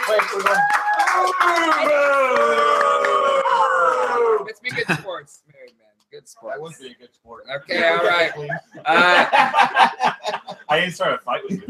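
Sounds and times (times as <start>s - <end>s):
audience applause: 0.0s - 3.5s
speech: 0.1s - 3.2s, 6.2s - 11.6s
cheering and whooping voices: 0.1s - 4.5s
laughter: 4.7s - 5.0s, 7.7s - 11.6s.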